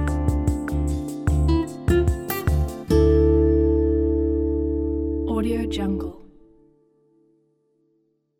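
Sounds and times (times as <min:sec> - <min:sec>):
bossa nova music: 0:00.0 - 0:05.8.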